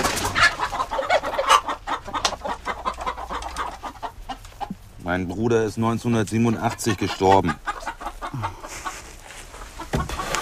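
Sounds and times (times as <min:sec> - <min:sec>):
chickens clucking and squawking in a henhouse: 0:00.0 - 0:10.4
speech: 0:05.1 - 0:07.7.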